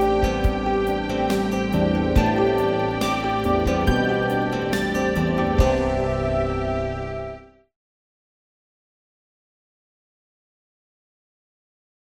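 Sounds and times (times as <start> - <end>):
easy listening and classical music: 0.0 - 7.6.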